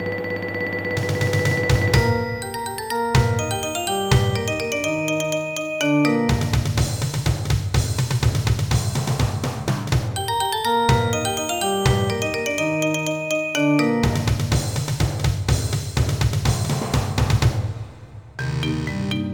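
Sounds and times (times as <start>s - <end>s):
percussion: 0.0s - 19.3s.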